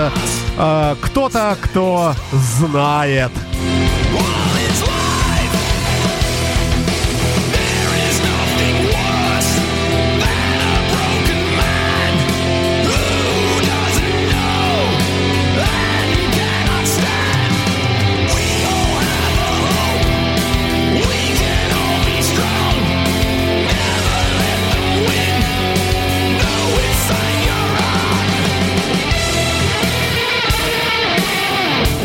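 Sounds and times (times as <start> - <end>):
speech: 0.0 - 4.8
loud rock music with driving bass and drums: 0.0 - 32.0
wailing electric guitar solo of bending, soaring notes: 2.2 - 32.0.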